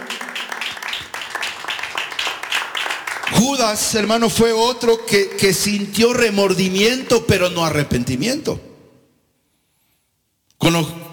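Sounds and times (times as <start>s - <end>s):
audience clapping hands: 0.0s - 5.8s
speech: 3.4s - 8.7s, 10.7s - 10.9s.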